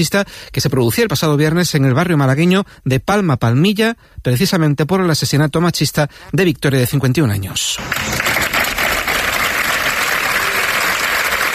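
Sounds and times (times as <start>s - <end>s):
speech: 0.0s - 8.4s
applause at a farewell: 7.8s - 11.5s.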